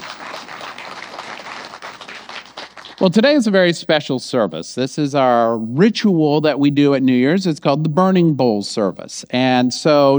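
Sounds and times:
crowd applause: 0.0s - 3.0s
speech: 3.0s - 10.1s.

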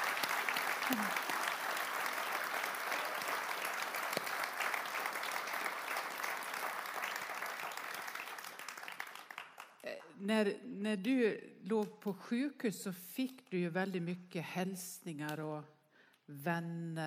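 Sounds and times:
audience applause: 0.0s - 9.8s
speech: 0.9s - 1.3s, 10.2s - 17.0s.

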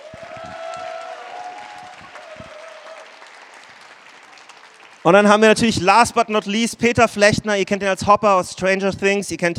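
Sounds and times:
audience applause: 0.0s - 5.6s
speech: 5.0s - 9.5s.

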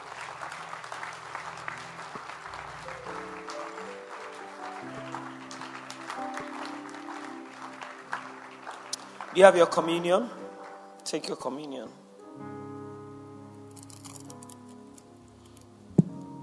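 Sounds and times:
audience clapping: 0.0s - 11.0s
speech: 9.4s - 10.4s, 11.1s - 12.5s.

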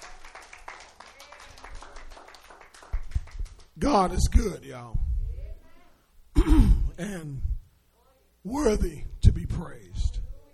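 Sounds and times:
audience clapping: 0.0s - 4.0s
speech: 3.8s - 5.1s, 7.0s - 7.5s, 8.4s - 9.9s.

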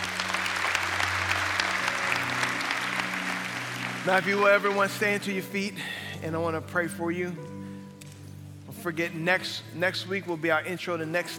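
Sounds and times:
church congregation applauding: 0.0s - 6.1s
speech: 4.0s - 7.6s, 8.8s - 11.3s.

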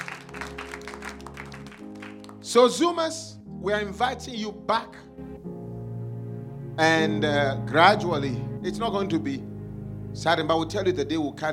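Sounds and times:
audience clapping: 0.0s - 2.6s
speech: 2.5s - 5.5s, 6.8s - 9.5s, 10.2s - 11.5s.

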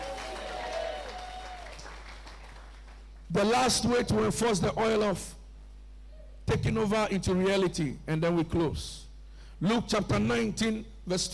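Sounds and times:
audience clapping hands: 0.0s - 3.3s
speech: 3.3s - 5.4s, 6.8s - 9.0s, 9.6s - 11.3s.

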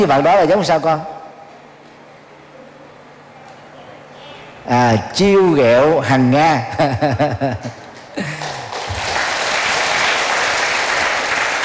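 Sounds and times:
speech: 0.0s - 1.1s, 4.7s - 8.5s
many children clapping at a temple gathering: 8.2s - 11.6s.

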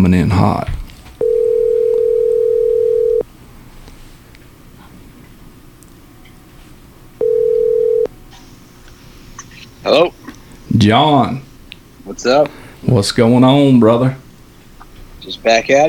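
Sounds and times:
speech: 0.0s - 0.8s, 10.8s - 11.4s, 12.1s - 14.2s, 15.3s - 15.8s
telephone tone while placing a call: 1.2s - 3.2s, 7.2s - 8.1s.

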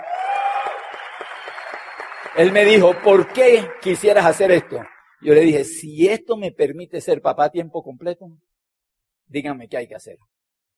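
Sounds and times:
audience applause: 0.0s - 5.5s
speech: 2.4s - 8.5s, 9.3s - 10.3s.

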